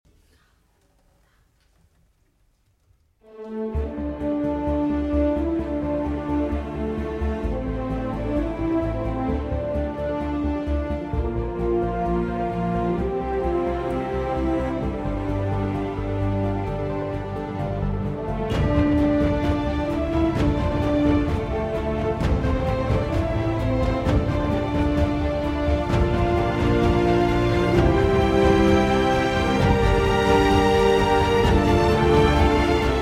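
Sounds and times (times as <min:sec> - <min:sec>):
instrumental music: 0:03.2 - 0:33.0.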